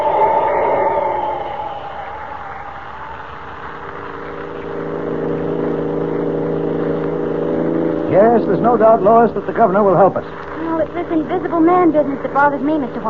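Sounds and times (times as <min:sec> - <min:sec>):
car engine speeding up: 0:00.0 - 0:10.0
speech: 0:08.6 - 0:13.0.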